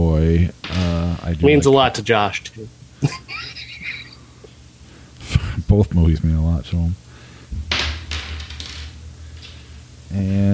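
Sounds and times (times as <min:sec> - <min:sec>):
speech: 0:01.3 - 0:03.3, 0:05.7 - 0:07.0, 0:10.1 - 0:10.5
laughter: 0:03.0 - 0:04.4
low hum: 0:05.2 - 0:10.5
flipped coin landing, clinking and rattling: 0:07.7 - 0:09.6.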